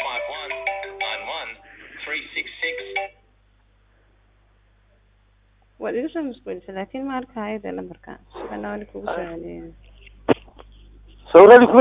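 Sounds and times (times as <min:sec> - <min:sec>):
WhatsApp phone ringtone: 0:00.0 - 0:03.2
speech: 0:05.8 - 0:09.9, 0:11.3 - 0:11.7.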